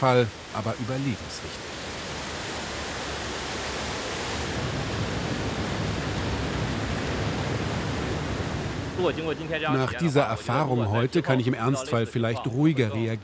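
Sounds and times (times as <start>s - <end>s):
speech: 0.0s - 1.8s, 9.0s - 13.2s
floodwater rushing into underground garage: 0.0s - 13.2s.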